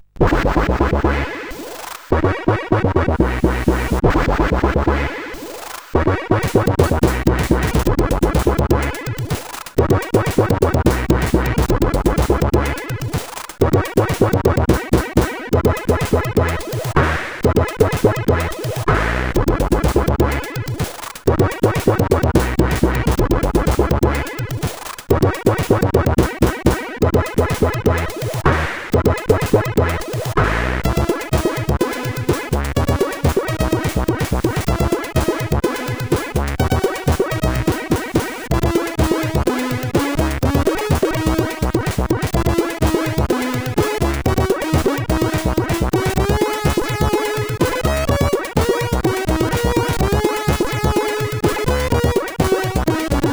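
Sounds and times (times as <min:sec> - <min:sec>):
SID CSG8580 chiptune synthesizer: 0:00.2 - 0:53.3.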